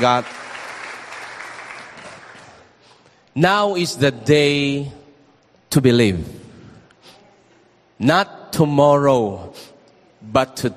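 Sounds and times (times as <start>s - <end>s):
speech: 0.0s - 0.4s, 3.4s - 5.0s, 5.7s - 6.4s, 8.0s - 10.7s
church congregation clapping as an offering to the Lord: 0.0s - 2.8s.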